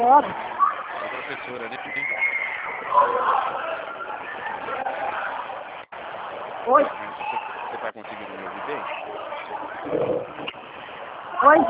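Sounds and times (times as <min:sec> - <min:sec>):
speech: 0:00.0 - 0:00.6, 0:01.3 - 0:04.9, 0:06.6 - 0:10.6, 0:11.4 - 0:11.6
many children shouting and yelling: 0:00.4 - 0:05.5.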